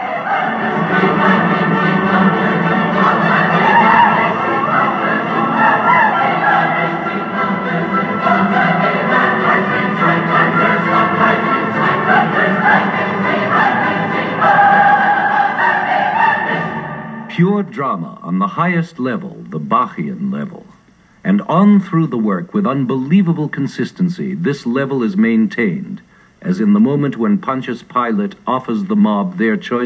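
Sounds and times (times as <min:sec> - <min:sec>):
full choir singing a fugal chorus: 0:00.0 - 0:17.4
speech: 0:17.7 - 0:29.8.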